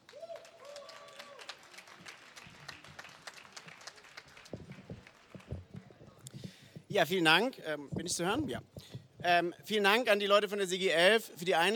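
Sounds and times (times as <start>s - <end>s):
audience applause: 0.0s - 6.0s
speech: 6.9s - 11.7s.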